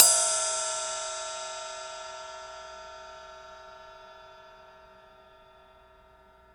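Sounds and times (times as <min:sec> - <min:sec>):
ride cymbal: 0:00.0 - 0:05.0.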